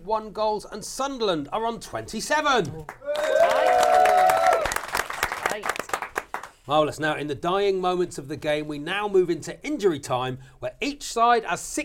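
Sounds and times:
speech: 0.1 - 3.8, 5.6 - 5.8, 6.7 - 11.8
round of applause: 2.9 - 6.6.

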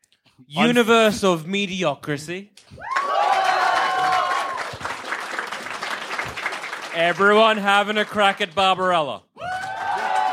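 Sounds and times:
speech: 0.4 - 3.0, 7.0 - 9.3
audience cheering: 2.8 - 7.3, 9.4 - 10.3
audience applause: 2.9 - 8.6, 9.4 - 10.3.

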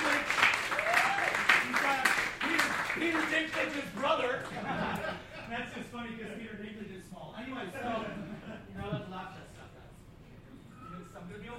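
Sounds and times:
crowd clapping: 0.0 - 4.8
people whooping and calling out: 0.7 - 1.7
laughter: 4.2 - 6.8, 7.6 - 9.7.

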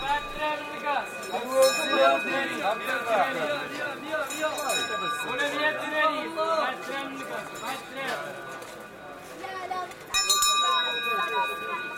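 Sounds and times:
water seller's small bell ringing: 0.0 - 6.4, 10.1 - 11.9
murmur of a busy market crowd: 0.0 - 11.9.

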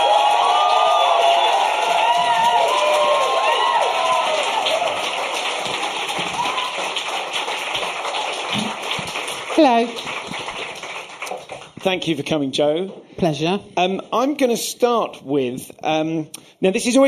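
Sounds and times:
comedy audience cheering, whooping and clapping as Jo Brand is welcomed on stage: 0.0 - 11.8
speech: 9.6 - 10.1, 11.8 - 17.0.

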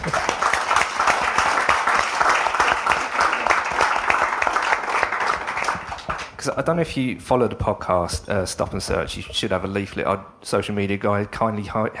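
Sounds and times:
audience applause: 0.0 - 6.5
speech: 6.5 - 11.9.

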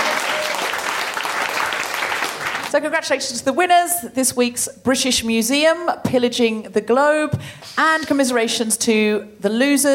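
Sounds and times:
studio audience applause at a comedy quiz show: 0.0 - 2.7
speech: 2.7 - 9.9.

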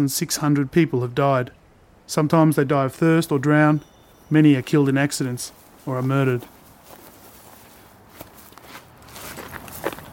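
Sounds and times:
speech: 0.0 - 6.6
footsteps walking: 4.1 - 10.1.

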